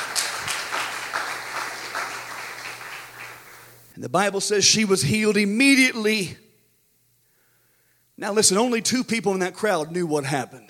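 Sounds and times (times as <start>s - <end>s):
audience applauding: 0.0s - 3.9s
speech: 4.0s - 6.4s, 8.2s - 10.6s.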